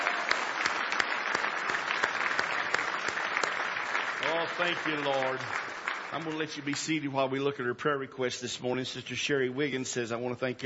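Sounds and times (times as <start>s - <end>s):
audience clapping hands: 0.0s - 7.3s
speech: 4.5s - 10.6s.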